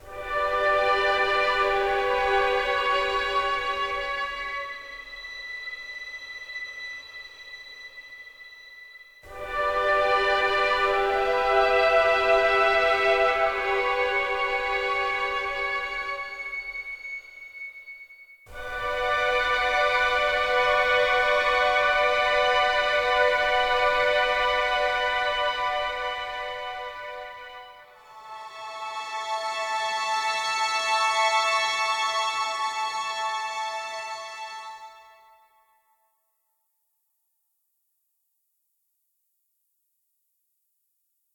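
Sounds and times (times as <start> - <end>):
ambient strings: 0.0 - 35.6.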